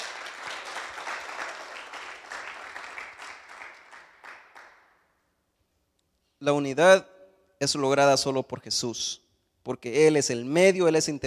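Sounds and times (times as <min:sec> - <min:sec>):
loud crowd applause: 0:00.0 - 0:05.0
speech: 0:06.4 - 0:11.2.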